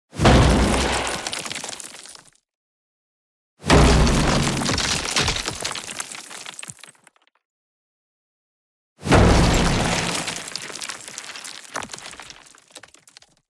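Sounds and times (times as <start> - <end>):
wall breaking: 0.2 - 2.2, 3.7 - 7.0, 9.0 - 13.4.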